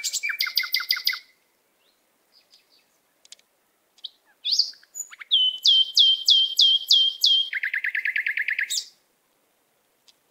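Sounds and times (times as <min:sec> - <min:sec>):
canary singing whistled notes and trills: 0:00.0 - 0:01.3, 0:04.0 - 0:09.0.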